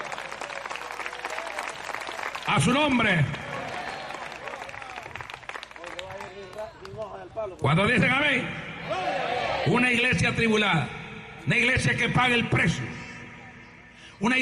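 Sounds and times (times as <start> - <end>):
church audience applauding: 0.0 - 7.2
speech: 2.5 - 3.4, 7.2 - 13.0, 14.2 - 14.3.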